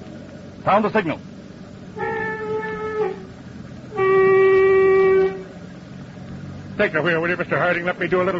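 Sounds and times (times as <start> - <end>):
speech: 0.7 - 1.4, 6.8 - 8.3
foghorn blasts: 1.9 - 5.6.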